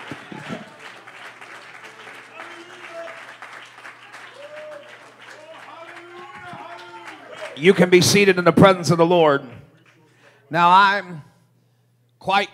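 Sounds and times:
audience clapping hands in praise: 0:00.0 - 0:08.5
speech: 0:07.6 - 0:09.6, 0:10.5 - 0:11.3, 0:12.2 - 0:12.5.

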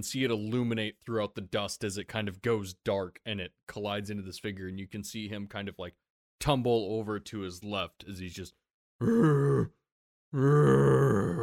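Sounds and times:
speech: 0:00.0 - 0:11.4
voice imitating a creature's grunting scream: 0:09.0 - 0:09.8, 0:10.4 - 0:11.4.

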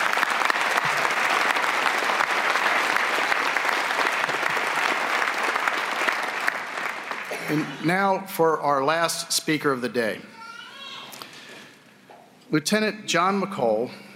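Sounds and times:
audience round of applause: 0:00.0 - 0:07.8
speech: 0:07.5 - 0:10.3, 0:12.5 - 0:14.0.

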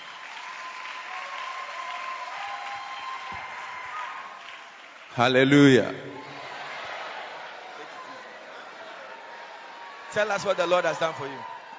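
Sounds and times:
church congregation applause at a morning service: 0:00.0 - 0:11.7
speech: 0:05.2 - 0:06.1, 0:10.1 - 0:11.5
faint crowd noise: 0:05.4 - 0:11.7.

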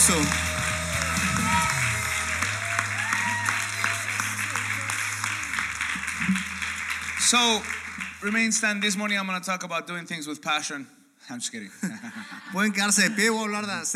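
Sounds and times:
speech: 0:00.0 - 0:00.5, 0:07.3 - 0:13.9
audience applause: 0:00.0 - 0:09.2
laughter: 0:11.7 - 0:13.9.

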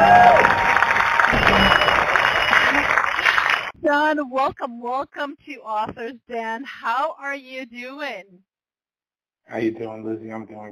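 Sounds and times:
audience applause: 0:00.0 - 0:03.7
faint cheers: 0:00.0 - 0:03.7
speech: 0:04.0 - 0:08.5, 0:09.5 - 0:10.6.

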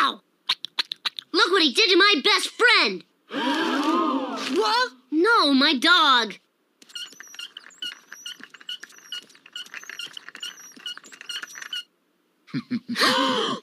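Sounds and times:
speech: 0:01.6 - 0:03.6, 0:04.5 - 0:06.4, 0:12.5 - 0:13.6
squeaking wheels: 0:06.8 - 0:11.9.

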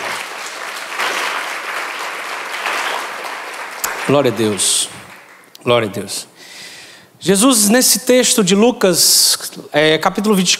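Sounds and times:
audience round of applause: 0:00.0 - 0:05.5
speech: 0:04.1 - 0:06.3, 0:07.2 - 0:10.5.

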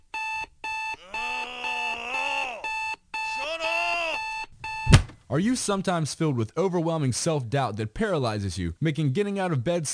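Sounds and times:
electronic alarm clock beeping: 0:00.0 - 0:05.1
speech: 0:05.3 - 0:09.9.

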